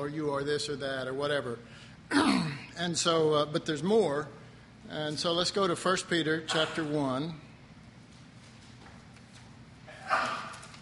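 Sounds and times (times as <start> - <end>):
speech: 0.0 - 7.5
sneeze: 2.1 - 2.7, 6.5 - 6.9, 9.9 - 10.6.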